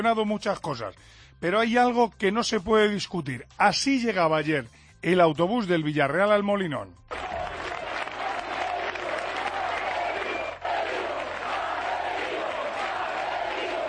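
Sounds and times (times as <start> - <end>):
speech: 0.0 - 7.4
crowd chanting a coach's name: 7.2 - 13.8.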